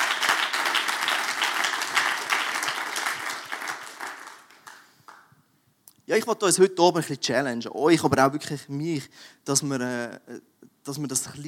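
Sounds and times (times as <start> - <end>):
audience applause: 0.0 - 5.2
speech: 6.1 - 11.4.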